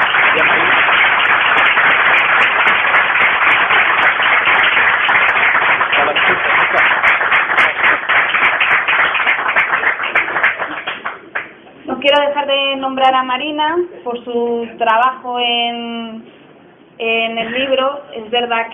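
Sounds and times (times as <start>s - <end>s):
audience applause: 0.0s - 11.5s
speech: 12.7s - 16.4s, 17.0s - 18.7s.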